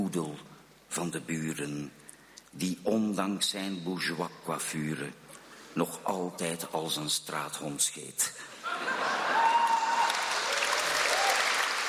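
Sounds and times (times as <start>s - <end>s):
speech: 0.1s - 5.2s, 5.8s - 8.9s
audience applause at the Nacht van de Poëzie 2017: 9.1s - 11.8s.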